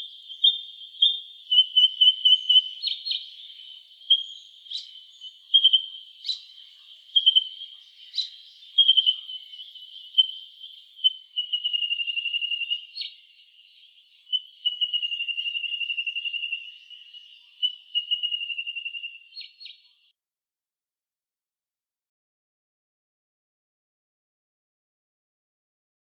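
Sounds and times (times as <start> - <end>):
white-throated honeyeater calling: 0.0 - 20.0.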